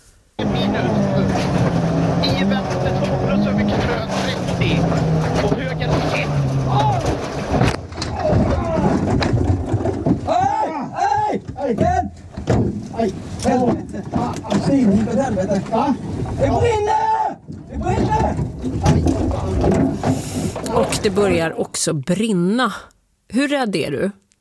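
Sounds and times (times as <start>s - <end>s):
rally car engine roaring: 0.4s - 8.0s
rumbling and clatter: 0.4s - 21.4s
agitated people shouting: 6.6s - 7.2s, 8.1s - 9.0s, 10.3s - 11.4s, 16.4s - 17.4s
speech: 13.0s - 17.1s, 21.0s - 24.2s.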